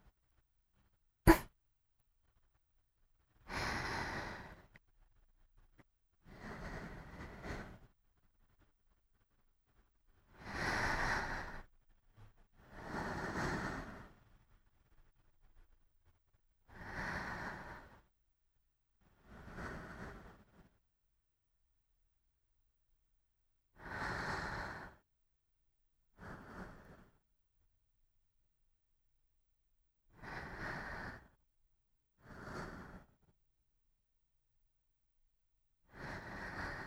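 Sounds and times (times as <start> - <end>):
sleeping breath: 3.4 - 4.8, 6.2 - 7.9, 10.3 - 11.7, 12.6 - 14.4, 16.7 - 18.1, 19.0 - 20.8, 23.8 - 25.0, 26.1 - 27.2, 30.1 - 31.4, 32.2 - 33.3, 35.9 - 36.8.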